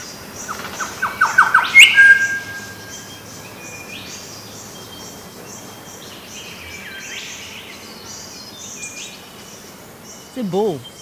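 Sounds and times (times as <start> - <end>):
quick rising bird chirps: 0.0 - 11.0
steady hiss: 0.0 - 11.0
bird squawk: 0.5 - 2.9
speech: 10.4 - 10.9.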